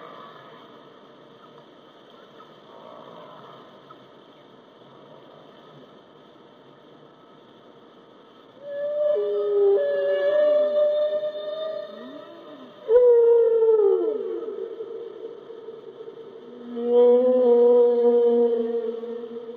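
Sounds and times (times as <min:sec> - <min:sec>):
whale song moaning: 0:08.6 - 0:14.8, 0:16.5 - 0:19.5.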